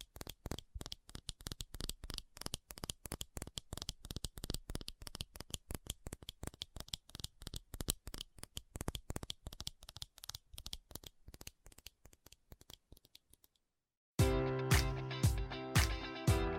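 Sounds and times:
fast tapping clicks: 0.0 - 13.6
sharp taps at a regular beat: 14.2 - 16.5.

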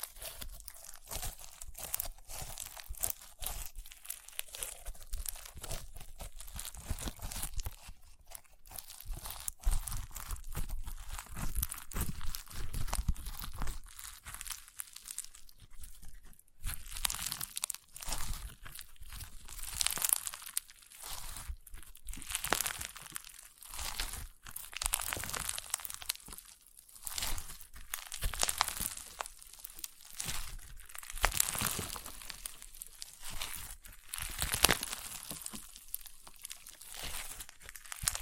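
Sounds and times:
crunchy slime being squeezed and worked: 0.0 - 38.1.

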